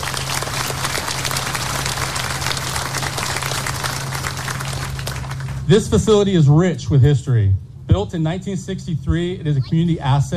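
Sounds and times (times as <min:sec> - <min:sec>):
audience applause: 0:00.0 - 0:05.6
faint low hum: 0:00.0 - 0:10.3
speech: 0:05.7 - 0:10.3.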